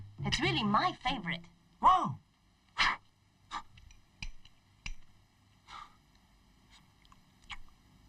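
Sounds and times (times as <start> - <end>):
speech: 0.2 - 2.2
faint breathing: 5.6 - 6.1
wet mouth clicks and smacks while eating ice cream: 7.0 - 7.8.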